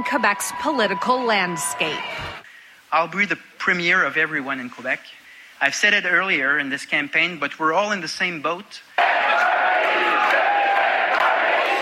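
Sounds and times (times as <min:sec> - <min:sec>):
speech: 0:00.0 - 0:09.0
crowd chanting at Parti Québécois headquarters in Quebec on election night: 0:09.0 - 0:11.8.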